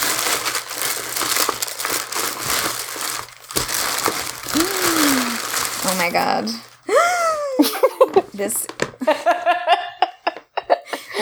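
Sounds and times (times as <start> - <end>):
wrapping paper crinkling as a gift is opened: 0.0 - 9.2
speech: 6.1 - 7.1, 8.4 - 8.8
laughter: 6.9 - 8.4, 9.0 - 11.1.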